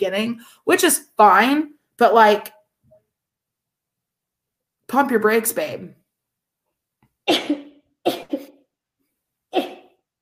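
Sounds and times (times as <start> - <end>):
speech: 0.0 - 2.6, 4.9 - 6.0, 7.3 - 8.3
person sneezing: 7.3 - 8.6, 9.5 - 10.0.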